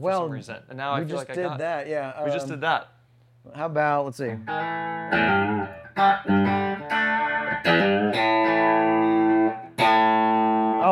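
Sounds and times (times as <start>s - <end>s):
speech: 0.0s - 8.3s
distorted electric guitar playing a short melodic lick: 4.5s - 10.8s.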